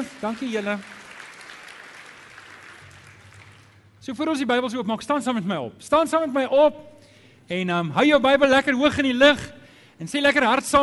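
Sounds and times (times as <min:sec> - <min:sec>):
speech: 0:00.0 - 0:01.0, 0:04.0 - 0:10.8
audience applauding the band: 0:00.0 - 0:04.0.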